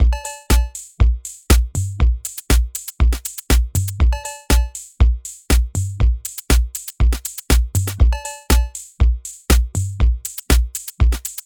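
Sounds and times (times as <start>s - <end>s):
analog drum machine: 0.0s - 11.4s.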